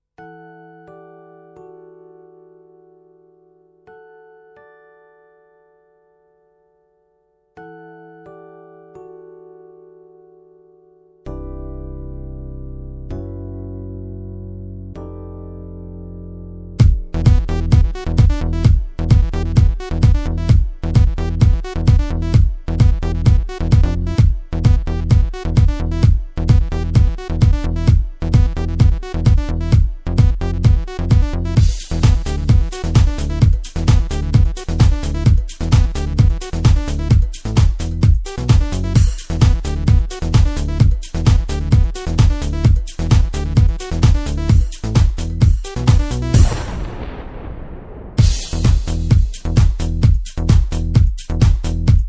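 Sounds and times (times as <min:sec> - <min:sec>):
progressive music on Korg Pa55 keyboard: 0:13.0 - 0:52.0.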